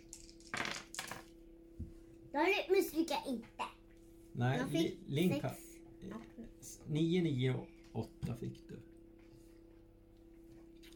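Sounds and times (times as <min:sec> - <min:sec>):
dice being rolled: 0:00.1 - 0:01.3
speech: 0:02.3 - 0:03.7, 0:04.4 - 0:08.9.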